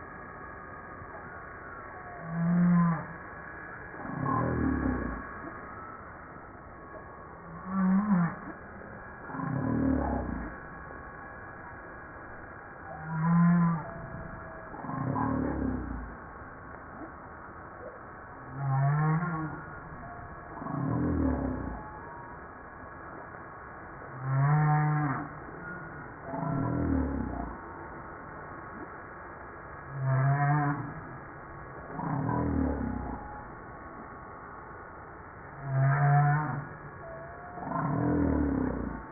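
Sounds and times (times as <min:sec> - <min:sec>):
gentle hiss: 0:00.0 - 0:39.1
humpback whale song: 0:01.9 - 0:05.9, 0:07.0 - 0:10.8, 0:12.8 - 0:16.3, 0:17.8 - 0:22.5, 0:24.1 - 0:28.0, 0:29.9 - 0:31.3, 0:31.9 - 0:34.1, 0:35.6 - 0:39.1.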